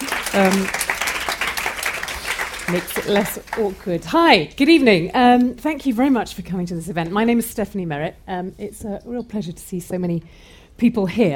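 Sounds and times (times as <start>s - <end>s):
clapping: 0.0s - 3.7s
speech: 0.4s - 0.8s, 2.7s - 11.3s.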